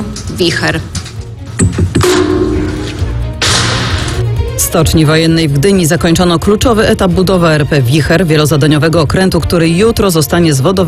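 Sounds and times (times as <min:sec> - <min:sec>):
speech: 0:00.4 - 0:01.0, 0:04.7 - 0:10.8
sharp knocks: 0:01.6 - 0:04.1.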